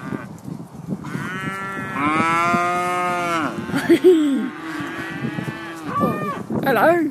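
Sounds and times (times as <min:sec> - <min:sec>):
cows mooing: 0:01.0 - 0:06.4.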